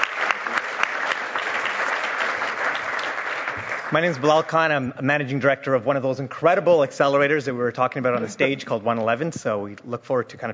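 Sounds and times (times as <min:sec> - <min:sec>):
audience applause: 0:00.0 - 0:04.6
speech: 0:03.9 - 0:10.5.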